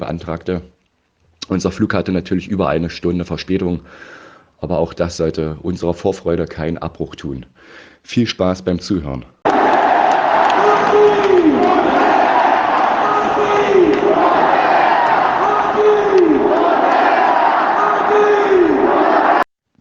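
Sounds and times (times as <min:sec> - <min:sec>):
speech: 0:00.0 - 0:00.8, 0:01.5 - 0:09.4
stadium crowd roaring at a football match after a goal: 0:09.4 - 0:19.5.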